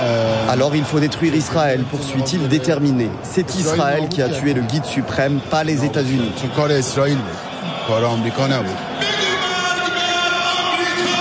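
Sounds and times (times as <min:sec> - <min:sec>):
speech: 0:00.5 - 0:09.1
huge crowd chanting slogans under the arch of the Mossallah: 0:05.8 - 0:11.1.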